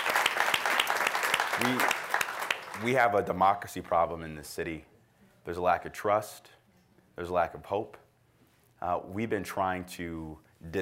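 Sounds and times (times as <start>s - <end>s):
round of applause: 0.0s - 3.1s
speech: 1.6s - 2.0s, 2.8s - 4.9s, 5.5s - 6.6s, 7.2s - 8.0s, 8.8s - 10.7s.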